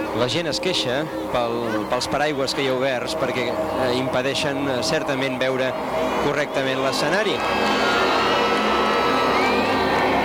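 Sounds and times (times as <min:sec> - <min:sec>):
speech: 0:00.2 - 0:08.0
crowd applauding and cheering: 0:05.7 - 0:10.2
scattered shouts: 0:07.3 - 0:10.2.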